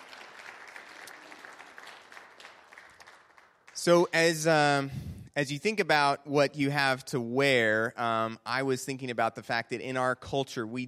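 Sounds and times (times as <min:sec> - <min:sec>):
crowd applause: 0:00.0 - 0:04.1
speech: 0:03.8 - 0:10.8.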